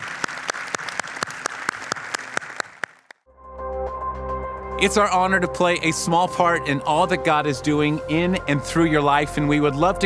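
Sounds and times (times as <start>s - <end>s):
audience applauding: 0.0s - 3.2s
speech: 4.8s - 10.0s.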